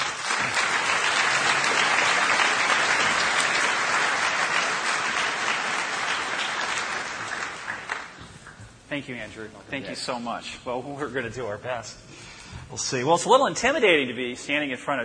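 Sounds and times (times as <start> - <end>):
audience of about 3,000 people applauding a speaker: 0.0 - 8.6
speech: 9.0 - 15.0.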